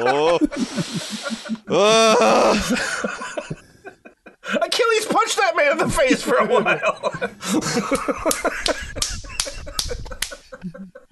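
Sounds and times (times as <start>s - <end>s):
speech: 0.0s - 3.5s, 5.5s - 8.8s
laughter: 0.0s - 11.0s
hand clapping: 7.8s - 10.7s.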